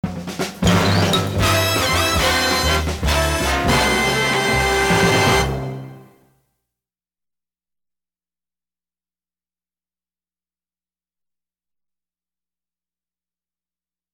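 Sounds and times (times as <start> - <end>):
fast hard driving music: 0.0 - 6.1.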